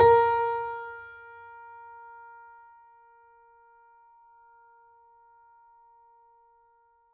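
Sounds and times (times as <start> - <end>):
mini grand piano: 0.0 - 4.8.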